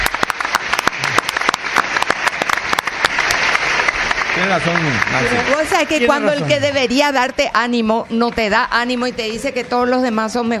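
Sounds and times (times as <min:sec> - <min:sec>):
hand claps: 0:00.0 - 0:06.0
speech: 0:04.5 - 0:10.5.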